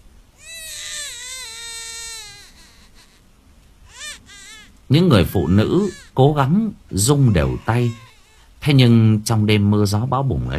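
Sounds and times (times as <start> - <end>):
babies crying loudly at night: 0.4 - 3.2, 3.9 - 4.8, 5.4 - 6.4, 7.0 - 8.5, 10.4 - 10.5
speech: 4.9 - 8.0, 8.6 - 10.5.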